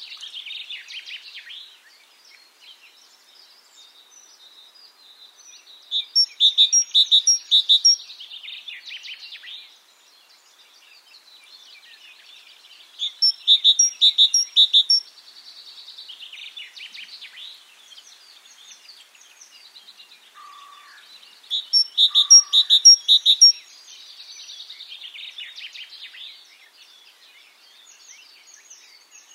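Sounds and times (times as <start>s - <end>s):
great tit calls: 6.0s - 8.0s, 13.0s - 15.0s, 21.6s - 23.7s.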